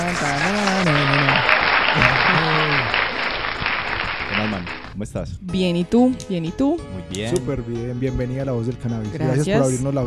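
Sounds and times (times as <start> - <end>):
speech: 0.0 - 1.0, 5.0 - 10.0
excited voices and whoops: 0.0 - 3.5
crowd applause: 0.0 - 5.0
laughter: 0.0 - 5.1, 7.2 - 7.7, 8.4 - 9.8.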